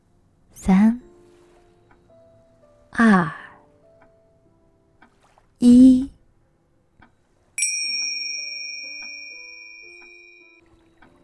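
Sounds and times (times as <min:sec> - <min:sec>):
speech: 0:00.7 - 0:01.0
bell chime ringing: 0:07.6 - 0:11.2.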